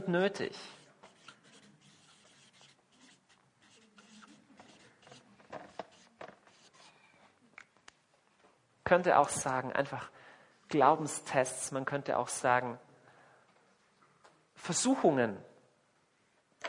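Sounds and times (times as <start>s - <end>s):
speech: 0.1s - 0.8s, 8.9s - 12.9s, 14.6s - 15.5s
writing on a board: 0.7s - 7.0s.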